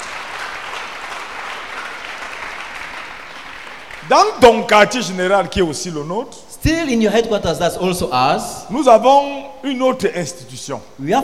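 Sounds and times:
crowd clapping: 0:00.0 - 0:04.7
speech: 0:04.1 - 0:11.2.

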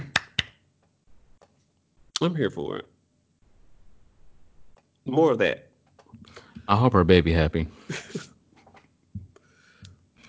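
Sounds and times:
hand clapping: 0:00.0 - 0:00.6
speech: 0:02.2 - 0:02.9, 0:05.0 - 0:08.3.

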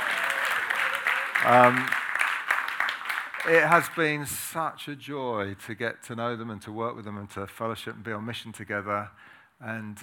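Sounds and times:
audience clapping: 0:00.0 - 0:04.3
speech: 0:01.4 - 0:02.0, 0:03.4 - 0:10.0.

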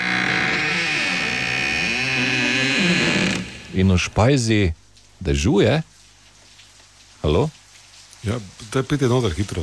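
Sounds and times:
heavy old door creaking open: 0:00.0 - 0:03.9
speech: 0:03.8 - 0:06.0, 0:07.2 - 0:07.6, 0:08.2 - 0:09.6.

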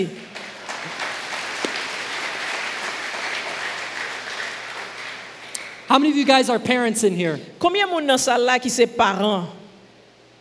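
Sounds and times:
speech: 0:00.0 - 0:00.2, 0:05.9 - 0:09.6
audience applauding: 0:00.0 - 0:07.1.

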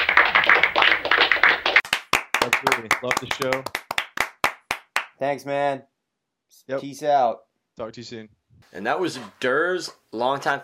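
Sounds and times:
round of applause: 0:00.0 - 0:05.2
speech: 0:02.4 - 0:03.8, 0:05.2 - 0:05.9, 0:06.5 - 0:10.6.

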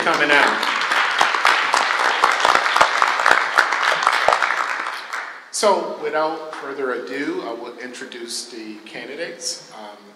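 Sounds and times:
speech: 0:00.0 - 0:00.7, 0:05.6 - 0:10.1
audience applause: 0:00.0 - 0:05.4.

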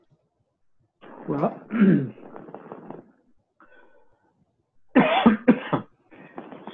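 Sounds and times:
speech: 0:01.3 - 0:02.4
person coughing after something went down the wrong pipe: 0:01.4 - 0:02.2, 0:05.0 - 0:05.9.

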